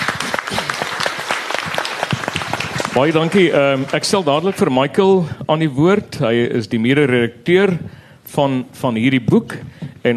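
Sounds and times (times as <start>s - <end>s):
audience applause: 0.0s - 4.7s
speech: 3.0s - 10.1s.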